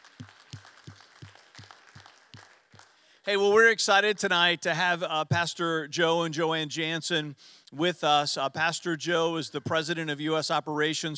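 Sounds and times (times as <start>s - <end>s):
audience clapping: 0.0s - 3.2s
speech: 3.2s - 11.1s.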